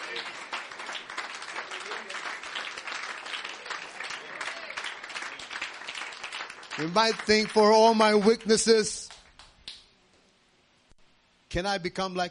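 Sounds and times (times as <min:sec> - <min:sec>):
audience clapping: 0:00.0 - 0:09.8
speech: 0:06.8 - 0:09.0, 0:11.6 - 0:12.2.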